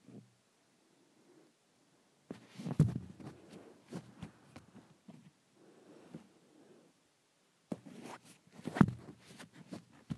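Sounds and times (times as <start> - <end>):
swishing, rubbing and knocking around the microphone: 2.3 - 5.3, 7.7 - 10.1.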